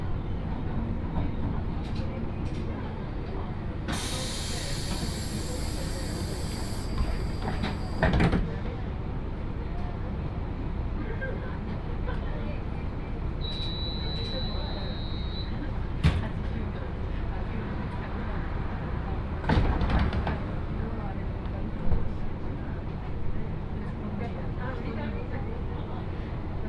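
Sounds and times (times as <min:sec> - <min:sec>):
Yodo Line train rumble from Uwajima to Chikanaga: 0:00.0 - 0:26.6
train air hiss: 0:03.9 - 0:08.0
short high whistle-like tone: 0:13.4 - 0:15.6.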